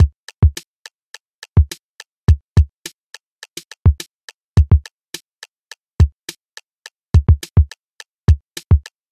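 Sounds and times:
note block drum loop: 0.0s - 0.6s, 3.6s - 4.9s, 7.2s - 8.9s.

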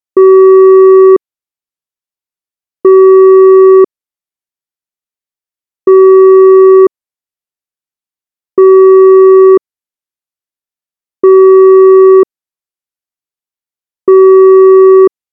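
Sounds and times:
telephone calling signal: 0.2s - 1.2s, 2.9s - 3.9s, 5.9s - 6.9s, 8.6s - 9.6s, 11.2s - 12.3s, 14.1s - 15.1s.

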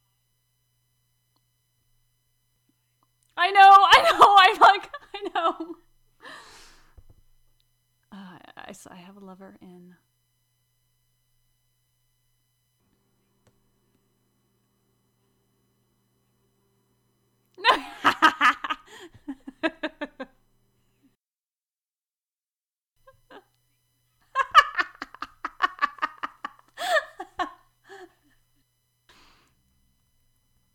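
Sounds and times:
person laughing: 3.6s - 5.8s, 17.6s - 20.3s, 24.3s - 28.3s.

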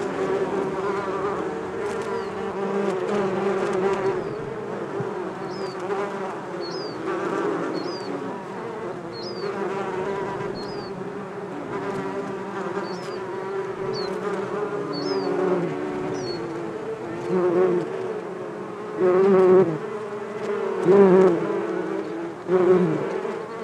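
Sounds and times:
bees humming in a thick drone: 0.0s - 23.6s
short high bird chirps: 5.4s - 5.9s, 6.6s - 7.0s, 7.7s - 8.2s, 9.1s - 9.6s, 10.6s - 11.0s, 12.8s - 13.2s, 13.9s - 14.2s, 14.9s - 15.4s, 16.1s - 16.4s.

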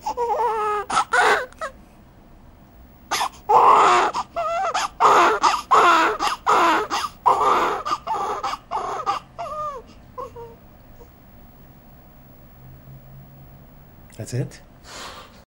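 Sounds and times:
newborn baby crying in the first moments after birth: 0.0s - 1.8s, 3.1s - 10.6s.

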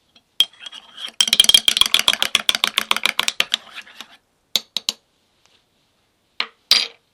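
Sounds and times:
coffee being stirred: 0.4s - 4.2s.

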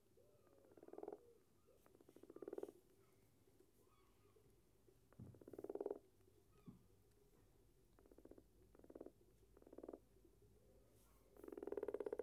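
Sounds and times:
common frog purring pulsed croaking in the UK: 0.6s - 1.3s, 5.5s - 6.0s, 8.0s - 10.0s, 11.5s - 12.2s.

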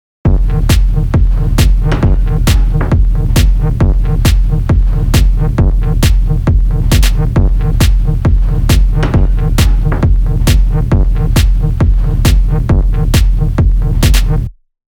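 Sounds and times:
techno beat: 0.3s - 14.5s.

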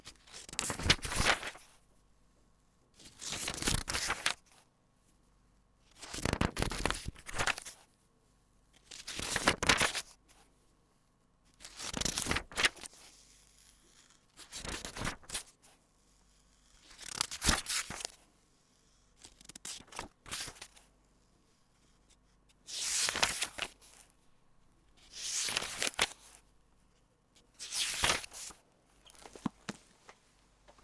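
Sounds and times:
page turning: 0.3s - 1.7s, 3.1s - 4.6s, 6.0s - 7.8s, 8.8s - 10.1s, 11.6s - 15.4s, 16.9s - 18.2s, 19.2s - 20.9s, 22.7s - 24.0s, 25.0s - 26.4s, 27.5s - 30.8s.

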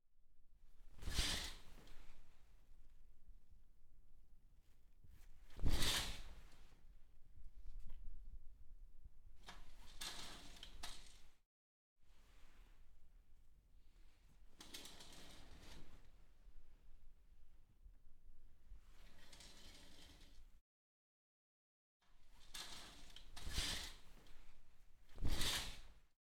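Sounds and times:
curtain opening and closing: 0.9s - 2.2s, 5.5s - 6.7s, 9.4s - 11.4s, 14.6s - 16.1s, 19.0s - 20.5s, 22.3s - 24.4s, 25.1s - 26.0s.

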